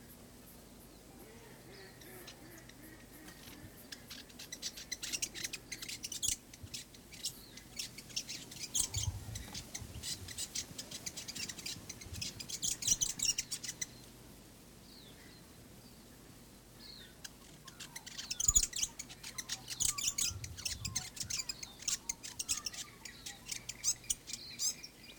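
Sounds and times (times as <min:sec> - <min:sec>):
fantail bird song: 0:00.7 - 0:14.2, 0:14.8 - 0:25.1.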